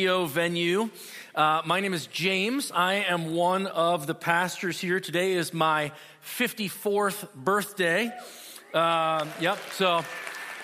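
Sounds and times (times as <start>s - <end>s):
speech: 0.0s - 10.3s
cheering: 8.7s - 10.6s.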